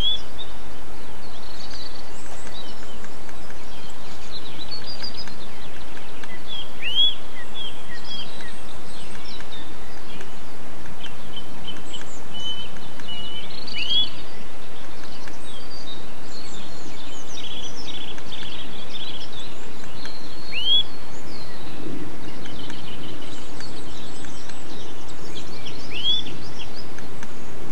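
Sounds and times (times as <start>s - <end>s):
short rising whistled birdsong: 0.0s - 27.6s.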